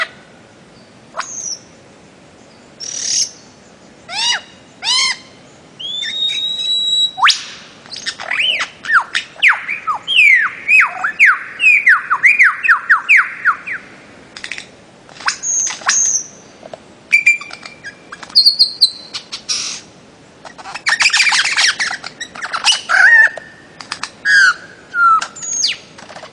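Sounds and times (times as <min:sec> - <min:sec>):
bird-of-paradise whistling calls: 0:01.2 - 0:01.7, 0:02.8 - 0:03.5, 0:04.1 - 0:13.9, 0:15.2 - 0:16.4, 0:17.1 - 0:23.6, 0:24.2 - 0:26.3.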